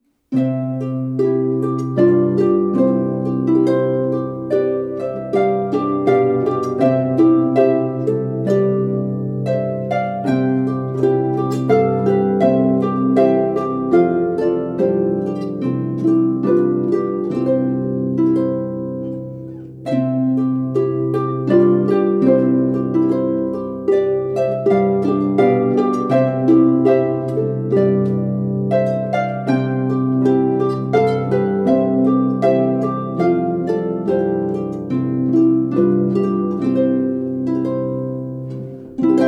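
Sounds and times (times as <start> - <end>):
minuet: 0.3 - 39.2.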